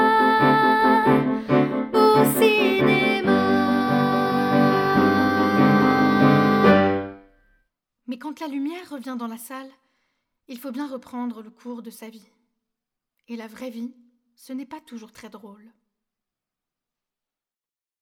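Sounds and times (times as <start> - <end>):
chanting with piano: 0.0 - 7.2.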